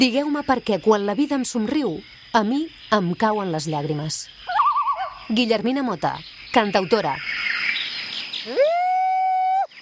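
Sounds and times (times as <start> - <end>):
speech: 0.0 - 4.6, 5.3 - 7.6
woman's traditional ululating shout from the Ebre delta: 8.5 - 9.7.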